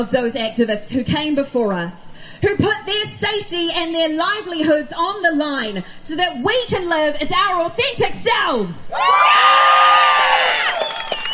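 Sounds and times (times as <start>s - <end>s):
speech: 0.0s - 10.0s
crowd cheering and whooping: 8.9s - 11.3s
scattered clapping: 10.5s - 11.3s.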